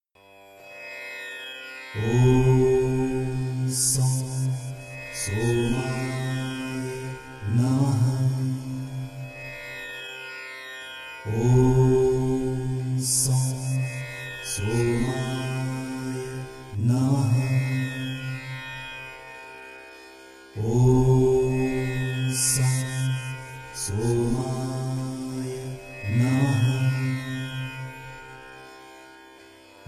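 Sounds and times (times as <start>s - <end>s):
mantra chanting excerpt: 2.0s - 9.2s, 11.2s - 18.6s, 20.6s - 27.8s.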